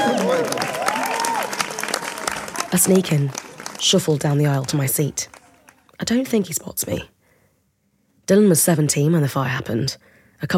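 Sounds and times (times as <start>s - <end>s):
audience applause: 0.0s - 5.9s
speech: 2.7s - 5.4s, 6.0s - 7.1s, 8.3s - 10.5s.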